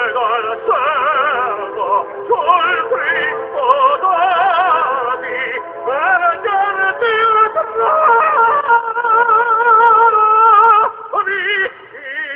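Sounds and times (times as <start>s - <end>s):
tenor singing: 0.0s - 12.3s.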